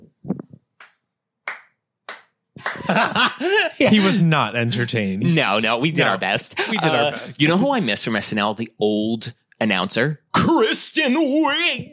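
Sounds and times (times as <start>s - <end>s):
hand clap: 0.8s - 3.1s
laughter: 2.6s - 8.1s
speech: 2.7s - 11.9s.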